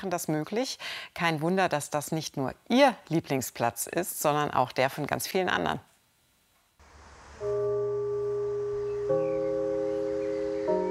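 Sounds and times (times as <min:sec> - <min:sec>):
speech: 0:00.0 - 0:05.9
gong signalling the start: 0:07.4 - 0:10.8.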